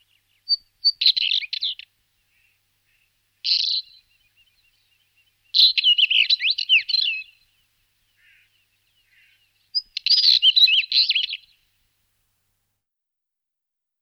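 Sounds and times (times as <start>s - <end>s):
Northern wheatear Oenanthe oenanthe calls: 0.0s - 11.6s.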